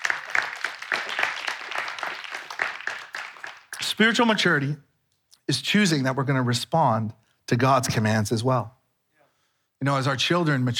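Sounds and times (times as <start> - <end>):
audience clapping: 0.0 - 4.8
speech: 4.0 - 4.9, 5.5 - 8.8, 9.8 - 10.7.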